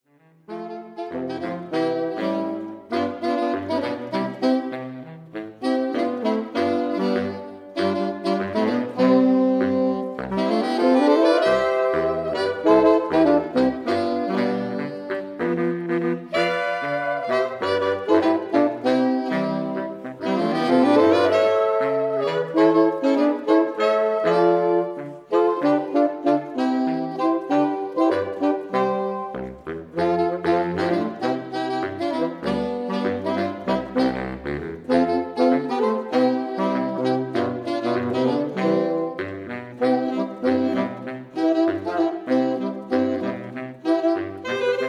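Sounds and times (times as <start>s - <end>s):
saxophone quartet: 0.1s - 44.8s.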